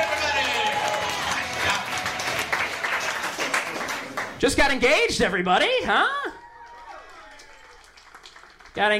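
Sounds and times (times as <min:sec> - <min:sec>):
audience applause: 0:00.0 - 0:04.7, 0:06.5 - 0:08.9
speech: 0:04.4 - 0:06.3, 0:08.8 - 0:08.9.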